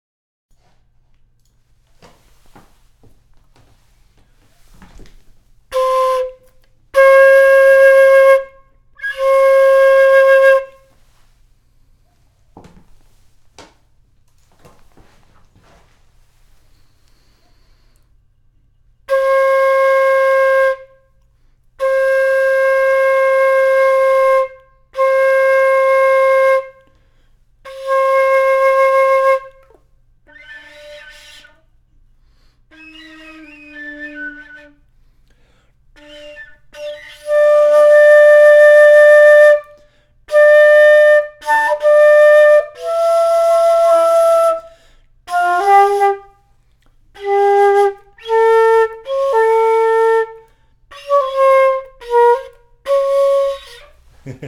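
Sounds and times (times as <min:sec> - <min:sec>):
flute: 0:05.7 - 0:11.0, 0:19.0 - 0:21.2, 0:21.8 - 0:27.0, 0:27.6 - 0:31.7, 0:32.6 - 0:34.9, 0:36.0 - 0:46.5, 0:47.2 - 0:54.0.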